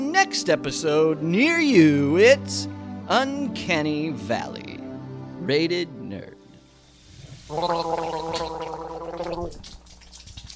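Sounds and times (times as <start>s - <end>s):
speech: 0.2s - 4.8s, 5.4s - 6.4s, 7.5s - 8.5s
gargling milk to rinse mouth: 7.2s - 10.5s.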